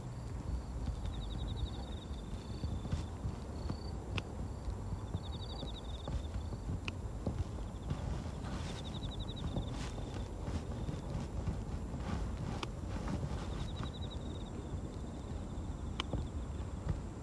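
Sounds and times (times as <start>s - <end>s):
dense rustling and crunching of weeds: 0.0s - 17.2s
trilled bird calls at dusk: 0.5s - 6.6s, 7.5s - 11.5s, 13.3s - 15.4s
grass pulled by hand while weeding a carrot patch: 5.6s - 14.7s.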